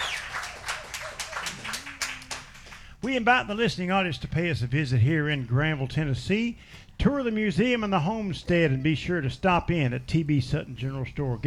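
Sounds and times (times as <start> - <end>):
audience applause: 0.0 - 2.9
speech: 3.0 - 11.4.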